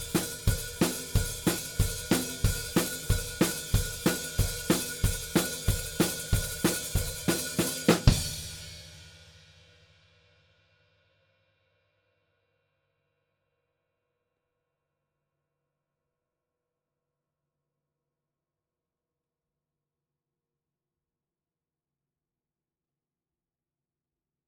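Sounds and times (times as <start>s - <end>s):
drums: 0.0s - 11.0s.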